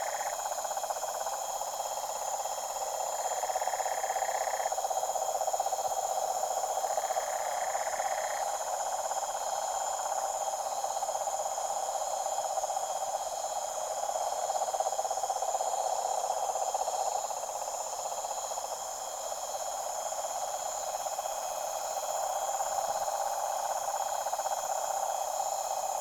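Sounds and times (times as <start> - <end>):
deep toad chorus at a tropical pond at night: 0.0 - 25.9.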